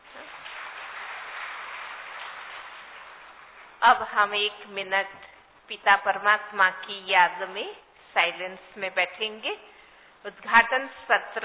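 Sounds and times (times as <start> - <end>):
audience clapping: 0.0 - 4.2
speech: 3.8 - 11.4.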